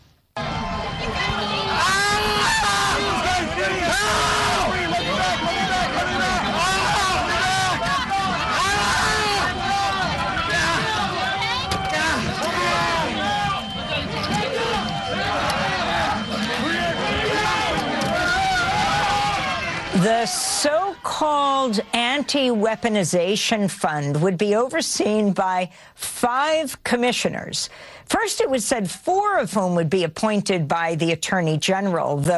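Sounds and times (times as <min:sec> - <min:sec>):
strained cries: 0:00.4 - 0:22.8
mob shouting while crushing a man against a door: 0:00.4 - 0:23.4
speech: 0:20.2 - 0:32.3.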